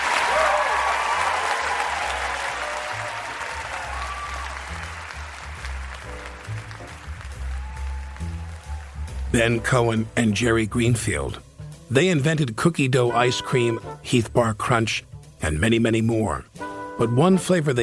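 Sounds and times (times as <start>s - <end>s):
audience applause: 0.0s - 9.5s
speech: 9.4s - 17.8s.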